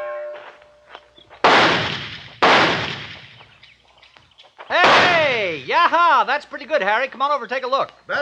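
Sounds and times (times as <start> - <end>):
target pistol shots: 1.4 - 3.5, 4.8 - 5.4
speech: 6.2 - 8.2.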